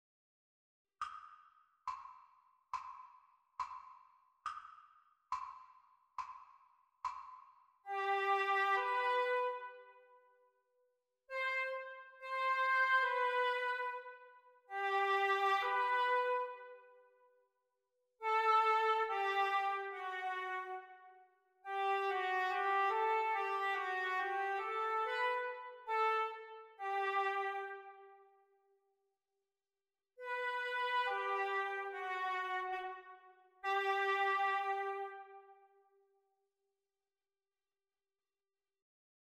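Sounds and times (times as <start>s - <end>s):
oboe duet practice: 7.9s - 9.8s, 11.4s - 16.8s, 18.2s - 20.9s, 21.7s - 28.0s, 30.2s - 33.0s, 33.6s - 35.4s.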